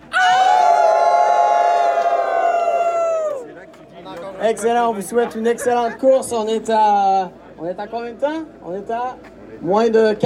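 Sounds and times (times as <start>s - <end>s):
crowd howling like wolves: 0.0s - 3.5s
speech: 4.4s - 10.2s
laughter: 5.1s - 6.3s.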